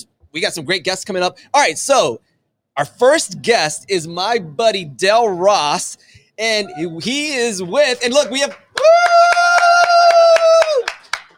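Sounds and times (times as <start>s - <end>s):
speech: 0.4s - 9.0s
team clapping in unison for a guest's entrance: 7.5s - 11.3s.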